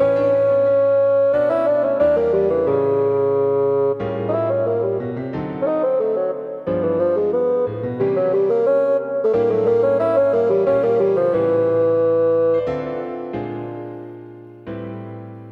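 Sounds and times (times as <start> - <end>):
bassoon playing running lines: 0.0 - 14.0
piano playing harmonies: 0.0 - 15.4.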